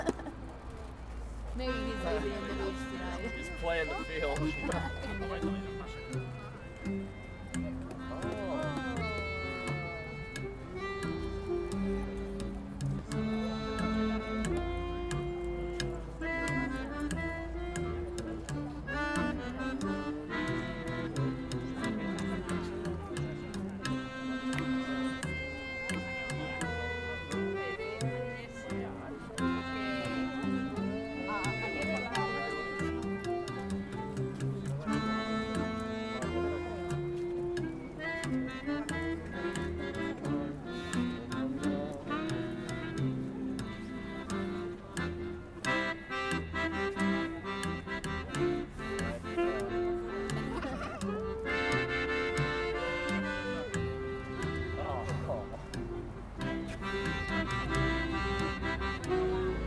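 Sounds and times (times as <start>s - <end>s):
laughter: 0.0s - 0.5s, 50.3s - 51.3s
San Sebastian jazz music: 1.6s - 59.6s.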